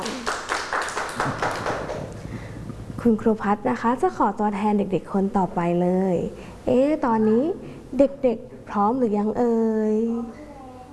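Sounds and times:
rhythmic hand clapping for a child at a children's lesson: 0:00.0 - 0:02.8
speech: 0:03.0 - 0:10.4.

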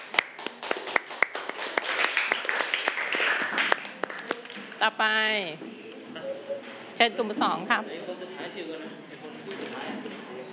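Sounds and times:
applause: 0:00.0 - 0:04.8
speech: 0:04.8 - 0:05.8, 0:06.5 - 0:10.2.

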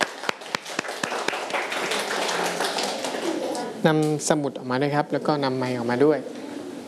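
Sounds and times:
classmates clapping: 0:00.0 - 0:03.7
speech: 0:03.8 - 0:06.4.

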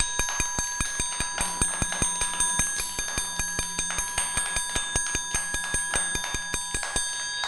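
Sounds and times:
teacher tapping a fast rhythm on a ringing bell-like instrument: 0:00.0 - 0:07.4.

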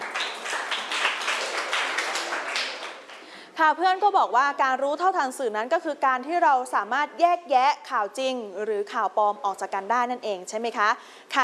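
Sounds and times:
students clapping for a classmate: 0:00.0 - 0:03.4
speech: 0:03.6 - 0:11.4.

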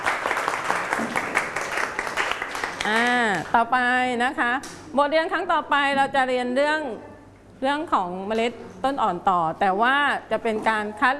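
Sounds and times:
students clapping: 0:00.0 - 0:03.5
speech: 0:02.8 - 0:11.1.

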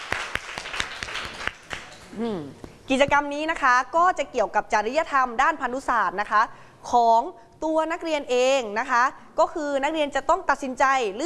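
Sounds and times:
classroom applause: 0:00.0 - 0:02.1
speech: 0:02.2 - 0:11.2.

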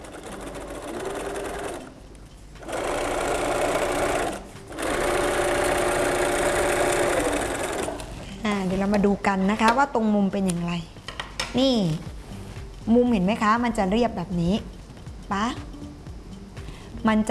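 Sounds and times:
sewing machine stitching thick fabric: 0:00.0 - 0:01.9, 0:02.6 - 0:08.1
speech: 0:08.5 - 0:12.1, 0:12.9 - 0:15.7, 0:17.0 - 0:17.2.

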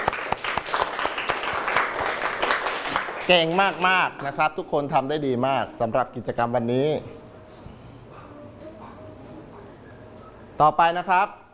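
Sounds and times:
students clapping: 0:00.0 - 0:04.3
speech: 0:03.3 - 0:07.2, 0:10.6 - 0:11.4.

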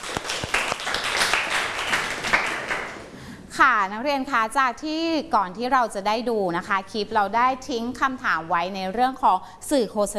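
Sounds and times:
group applauding: 0:00.0 - 0:03.1
speech: 0:03.6 - 0:10.1.

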